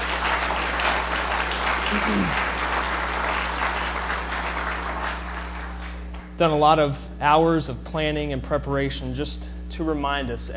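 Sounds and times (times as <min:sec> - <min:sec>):
audience applause: 0:00.0 - 0:06.0
speech: 0:01.9 - 0:02.5, 0:06.4 - 0:10.5.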